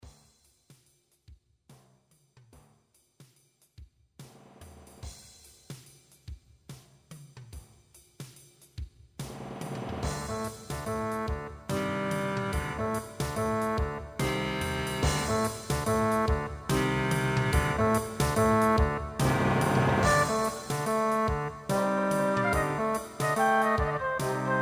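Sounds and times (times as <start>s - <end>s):
concert band playing: 10.0s - 24.6s.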